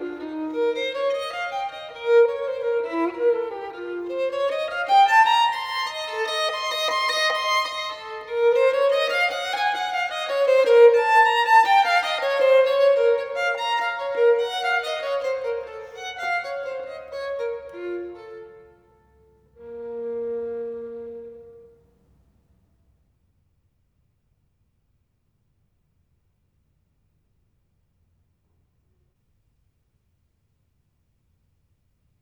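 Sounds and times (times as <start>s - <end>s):
solo violin partita: 0.0s - 22.0s.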